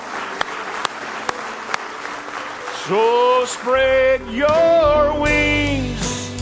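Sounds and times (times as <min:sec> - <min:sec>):
church congregation clapping in praise during a morning worship service: 0:00.0 - 0:04.9
speech: 0:02.9 - 0:06.3.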